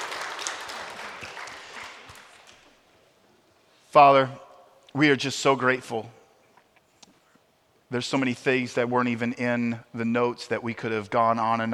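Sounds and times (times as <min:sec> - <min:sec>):
audience applause: 0:00.0 - 0:02.7
speech: 0:03.9 - 0:06.2, 0:07.9 - 0:11.7.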